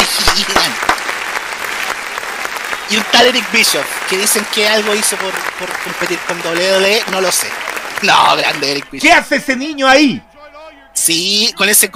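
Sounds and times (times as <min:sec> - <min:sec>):
applause: 0:00.0 - 0:09.2
speech: 0:02.9 - 0:10.3, 0:11.0 - 0:11.9.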